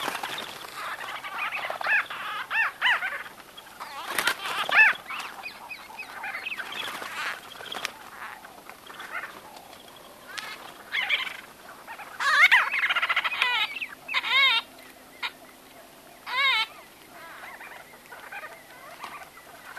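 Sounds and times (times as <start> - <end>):
White-fronted bee-eater harsh nasal chattering calls: 0.0 - 19.7.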